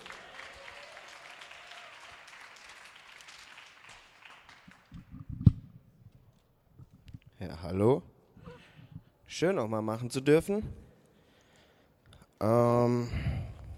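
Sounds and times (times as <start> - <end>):
audience applause: 0.0 - 5.2
speech: 7.5 - 8.1, 9.3 - 10.8, 12.4 - 13.3.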